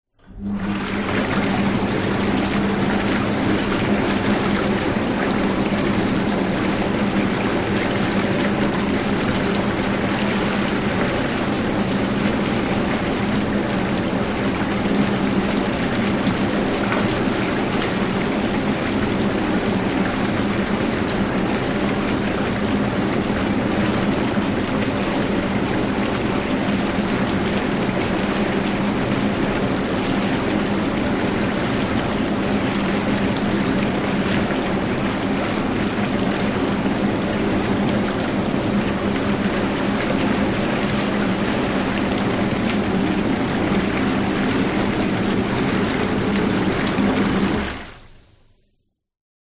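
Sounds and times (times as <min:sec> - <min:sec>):
household spa bath short bubbles: 0:00.3 - 0:48.3.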